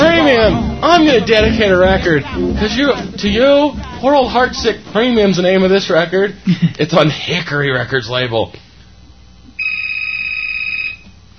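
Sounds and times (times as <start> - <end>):
speech: 1.0 - 8.6
studio phone ringing: 9.6 - 11.2.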